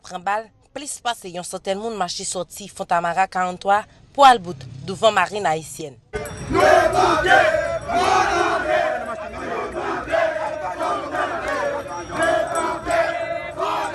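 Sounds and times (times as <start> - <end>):
speech: 0.1 - 8.6
protest crowd chanting slogans: 6.2 - 13.9.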